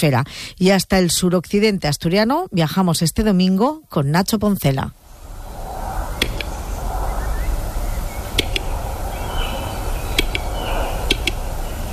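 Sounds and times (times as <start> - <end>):
speech: 0.0 - 5.0
Western capercaillie call: 6.1 - 11.9.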